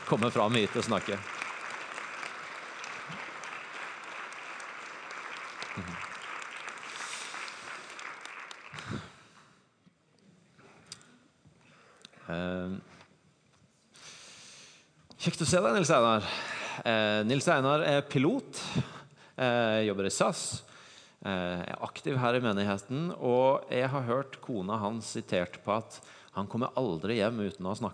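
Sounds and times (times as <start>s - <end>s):
audience applause: 0.0s - 9.2s
speech: 0.1s - 1.4s, 15.4s - 27.9s.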